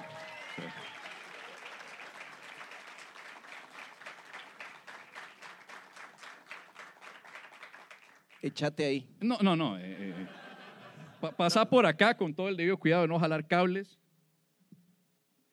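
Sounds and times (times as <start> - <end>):
audience applause: 0.0 - 8.4
speech: 0.6 - 0.9, 8.4 - 10.4, 11.2 - 14.0
laughter: 9.9 - 11.6.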